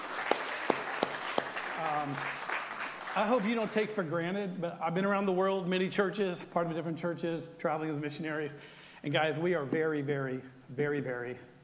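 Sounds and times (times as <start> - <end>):
audience applauding: 0.0 - 4.0
speech: 1.9 - 2.4, 3.2 - 11.5.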